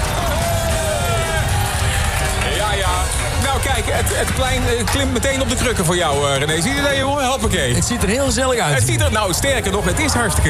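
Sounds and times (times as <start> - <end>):
audience applause: 0.0 - 4.9
speech: 3.8 - 10.4.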